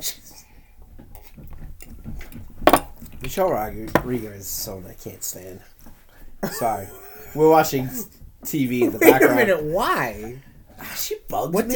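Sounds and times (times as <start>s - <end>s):
speech: 0.0s - 0.2s, 3.3s - 5.7s, 6.4s - 11.7s
glasses clinking in a toast: 2.7s - 2.9s.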